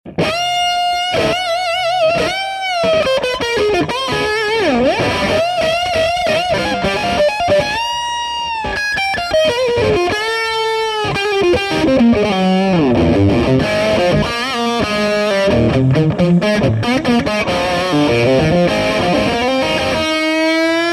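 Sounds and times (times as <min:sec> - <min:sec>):
guitar: 0:00.0 - 0:20.9.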